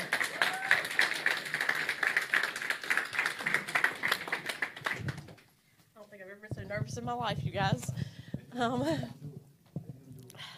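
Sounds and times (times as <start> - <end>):
crowd applauding: 0.0 - 5.4
speech: 7.0 - 8.0, 8.6 - 9.2.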